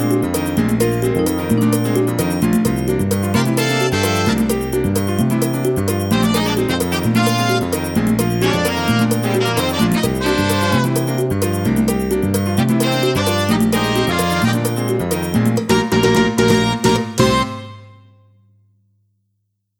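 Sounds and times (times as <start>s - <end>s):
Latin backing music: 0.0s - 18.2s.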